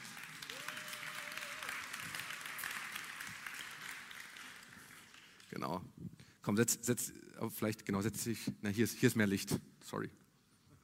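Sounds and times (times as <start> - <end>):
audience applause: 0.0 - 5.5
speech: 5.5 - 10.2.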